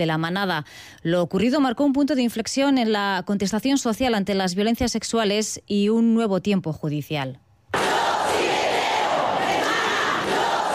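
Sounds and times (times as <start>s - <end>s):
speech: 0.0s - 7.4s
protest crowd chanting slogans in the street: 7.7s - 10.7s.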